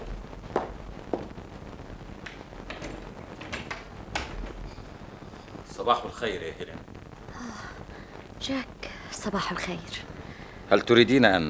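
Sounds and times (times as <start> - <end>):
footsteps of someone going to answer the door: 0.0 - 5.7
door clicking and rattling as it is opened: 2.2 - 4.6
speech: 5.8 - 6.9, 8.4 - 10.1, 10.7 - 11.4.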